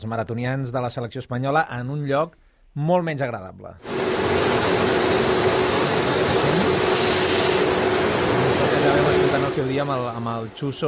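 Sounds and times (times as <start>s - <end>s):
speech: 0.0s - 5.1s, 8.9s - 10.8s
climate chamber machine running: 3.8s - 10.8s.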